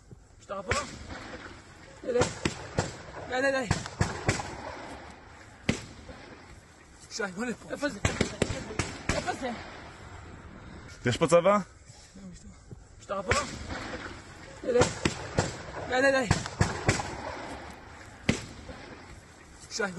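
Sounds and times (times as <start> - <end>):
speech: 0.5 - 1.2, 2.0 - 4.0, 7.2 - 8.5, 9.3 - 9.8, 11.0 - 12.4, 13.1 - 15.2, 15.9 - 16.6, 19.8 - 19.9
gunshots during a shooting incident: 0.7 - 6.5, 7.8 - 10.0, 13.3 - 19.2.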